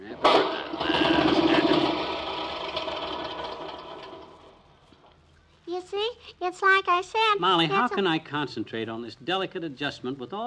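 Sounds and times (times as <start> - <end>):
small lawnmower engine starting and chugging: 0.0 - 5.0
speech: 6.5 - 10.4.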